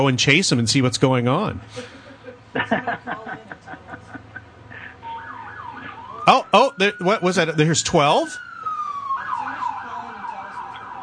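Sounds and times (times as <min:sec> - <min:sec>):
speech: 0:00.0 - 0:03.4, 0:06.3 - 0:08.4
low rumble of traffic: 0:00.0 - 0:11.0
laughter: 0:01.7 - 0:05.0
emergency vehicle sirens passing: 0:04.7 - 0:11.0.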